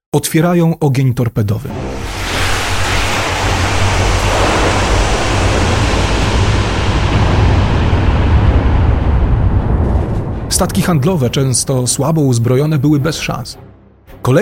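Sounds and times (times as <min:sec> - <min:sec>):
speech: 0:00.1 - 0:02.0, 0:10.6 - 0:14.4
open ocean waves and surf at night: 0:01.8 - 0:10.4.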